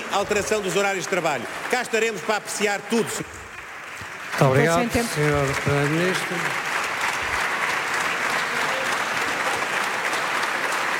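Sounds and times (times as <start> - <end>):
parliament applause: 0.0 - 10.9
speech: 0.1 - 3.5, 4.4 - 6.7.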